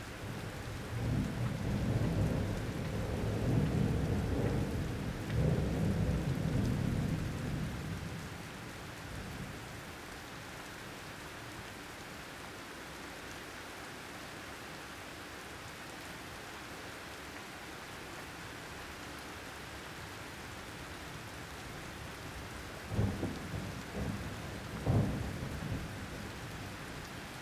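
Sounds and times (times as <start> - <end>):
thunderstorm: 0.3 - 8.4, 22.8 - 27.2.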